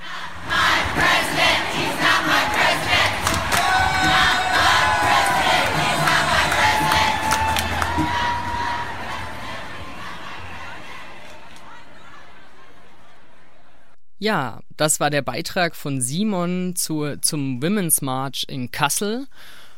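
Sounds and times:
large protest march crowd chanting: 0.0 - 13.9
cheers: 2.0 - 13.2
speech: 14.2 - 19.6.

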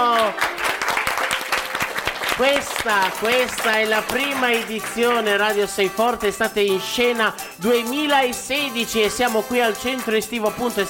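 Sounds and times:
audience applause: 0.0 - 5.0
speech: 2.4 - 10.8.

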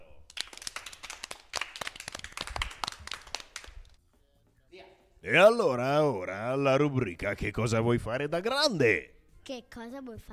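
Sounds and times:
applause: 0.3 - 4.0
speech: 5.3 - 10.3.

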